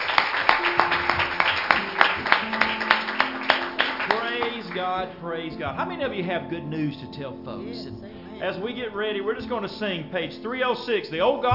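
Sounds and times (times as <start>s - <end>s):
audience clapping hands in praise: 0.0s - 5.2s
speech: 4.8s - 11.5s.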